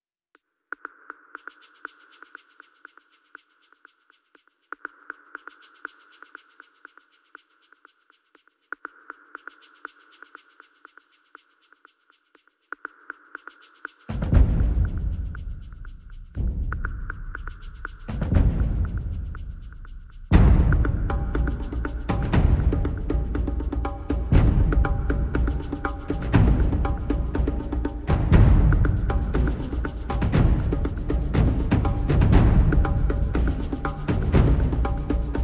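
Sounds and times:
percussion: 0.3s - 35.4s.

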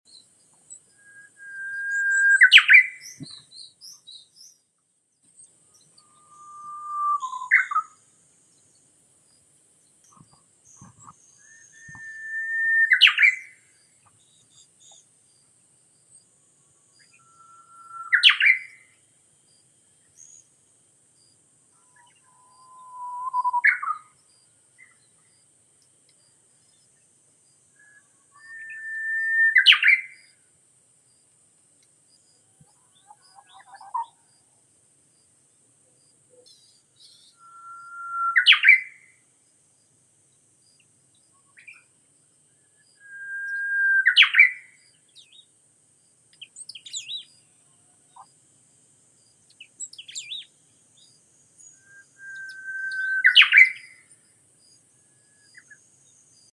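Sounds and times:
bamboo warbler Cettia diphone: 0.1s - 16.0s, 16.9s - 18.9s, 21.2s - 25.4s, 26.2s - 30.4s, 32.1s - 34.5s, 35.9s - 39.1s, 42.7s - 48.4s, 49.2s - 56.5s.

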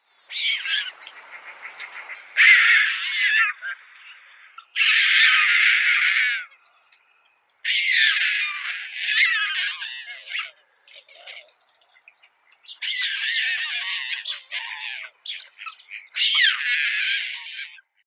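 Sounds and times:
white stork chick Ciconia ciconia calling: 0.3s - 17.7s.

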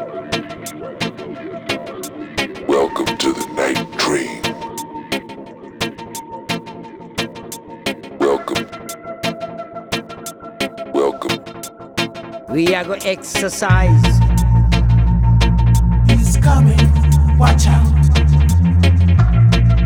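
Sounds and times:
dub remix music: 0.0s - 19.8s.

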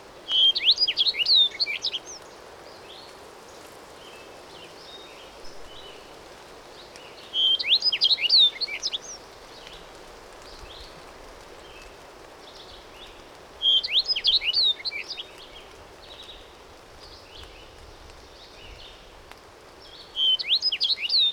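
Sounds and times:
bunting and penduline tit singing: 0.3s - 2.2s, 7.4s - 9.2s, 13.6s - 16.4s, 20.0s - 21.3s.

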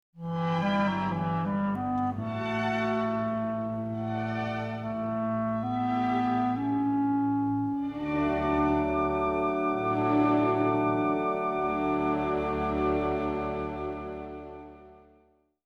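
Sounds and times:
clarinet concerto adagio: 0.2s - 15.4s.

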